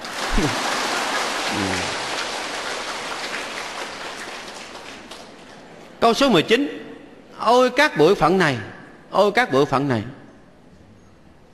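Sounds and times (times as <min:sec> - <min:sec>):
round of applause: 0:00.0 - 0:05.9
speech: 0:00.4 - 0:00.7, 0:01.5 - 0:02.0, 0:06.0 - 0:10.2
voice fragments: 0:01.5 - 0:02.0.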